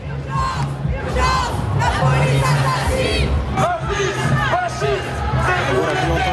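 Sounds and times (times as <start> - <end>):
protest crowd chanting slogans: 0.0 - 6.3.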